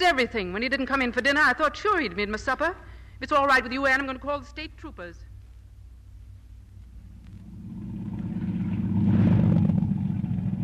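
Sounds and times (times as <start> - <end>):
speech: 0.0 - 5.3
mechanical hum: 0.0 - 10.6
boat engine running: 7.1 - 10.6.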